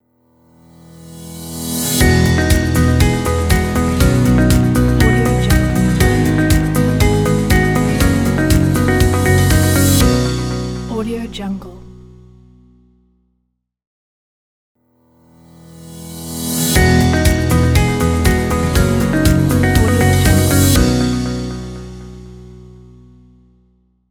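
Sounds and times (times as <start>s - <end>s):
corporate logo jingle: 1.9s - 11.8s, 16.2s - 22.5s.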